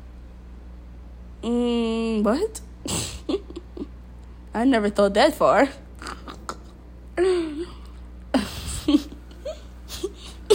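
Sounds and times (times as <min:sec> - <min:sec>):
speech: 0:01.4 - 0:03.1, 0:04.6 - 0:05.8
person coughing: 0:09.9 - 0:10.5.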